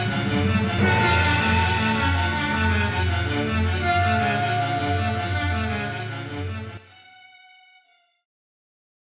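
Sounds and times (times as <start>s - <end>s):
symphonic raga music: 0.0s - 7.4s.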